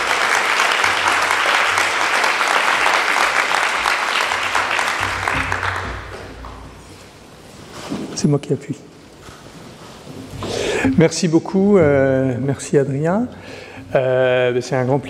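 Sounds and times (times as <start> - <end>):
sustained audience applause: 0.0 - 6.3
speech: 8.2 - 9.0, 10.8 - 15.0.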